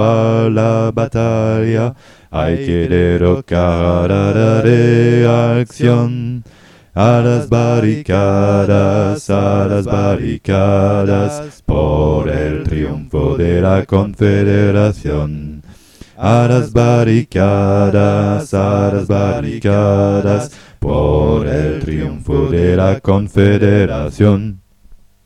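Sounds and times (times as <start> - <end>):
bass: 0.0 - 24.6.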